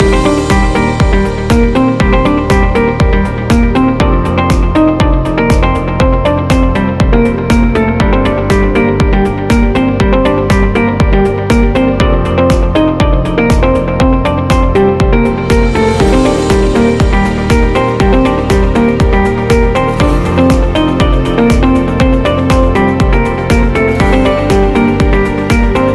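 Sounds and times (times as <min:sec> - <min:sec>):
technology electronic music loop: 0:00.0 - 0:25.9.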